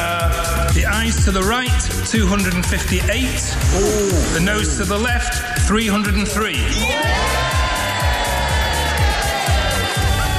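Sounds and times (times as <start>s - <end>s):
speech: 1.0s - 7.4s
members of parliament laughing and cheering: 2.7s - 10.3s.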